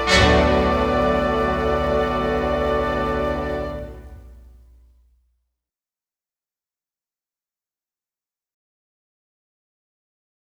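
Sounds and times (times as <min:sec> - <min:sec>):
legato melody: 0:00.0 - 0:04.8.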